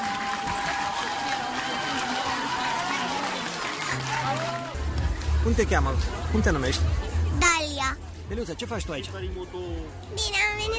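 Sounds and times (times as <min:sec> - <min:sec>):
audience applause for children dancers: 0:00.0 - 0:05.3
speech: 0:05.4 - 0:10.7.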